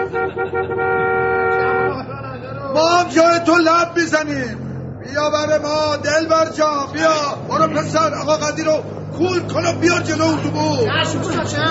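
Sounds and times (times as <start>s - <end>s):
celebratory car horn honking: 0.0s - 2.1s
speech: 0.3s - 1.1s, 2.7s - 11.7s.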